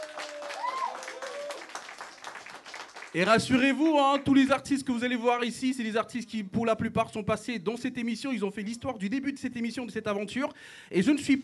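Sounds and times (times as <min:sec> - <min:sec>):
whoops and cheers: 0:00.0 - 0:01.9
live audience applauding: 0:00.0 - 0:04.0
speech: 0:03.1 - 0:11.4.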